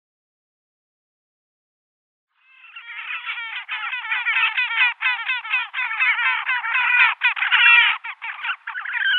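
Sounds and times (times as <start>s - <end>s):
horned grebe display calling with chattering trills: 2.5s - 9.1s.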